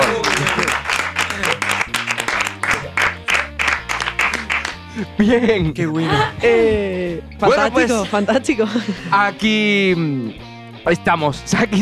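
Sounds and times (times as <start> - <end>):
audience applause: 0.0 - 4.9
laughter: 0.0 - 9.2
speech: 5.0 - 11.8.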